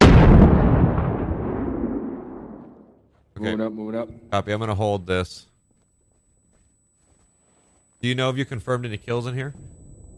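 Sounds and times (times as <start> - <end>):
grenade explosion in the video game Six Days in Fallujah: 0.0 - 3.0
speech: 3.4 - 5.5, 8.0 - 9.8.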